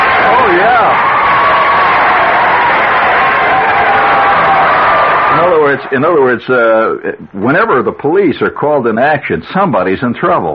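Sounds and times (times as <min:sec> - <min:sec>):
audience cheering: 0:00.0 - 0:06.9
speech: 0:05.9 - 0:10.5.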